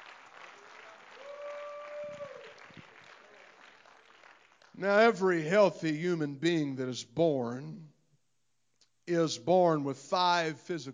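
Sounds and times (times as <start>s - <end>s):
audience clapping hands: 0.0s - 4.8s
speech: 4.8s - 7.9s, 9.1s - 10.9s.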